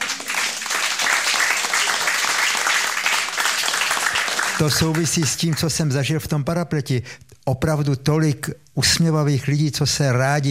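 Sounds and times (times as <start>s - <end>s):
audience applause: 0.0s - 5.5s
speech: 4.6s - 10.4s.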